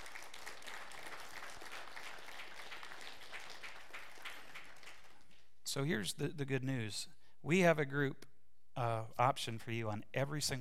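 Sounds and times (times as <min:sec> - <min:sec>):
audience applause: 0:00.0 - 0:05.3
speech: 0:05.8 - 0:10.6.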